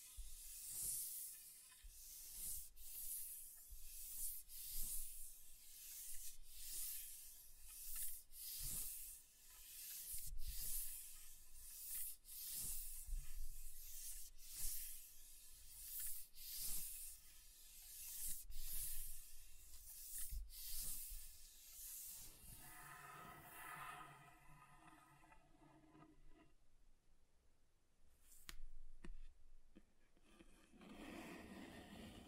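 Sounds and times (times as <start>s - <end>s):
softer, lower, more rubbing: 0.0s - 23.8s
scratching across a table surface: 0.0s - 26.6s, 29.7s - 32.2s.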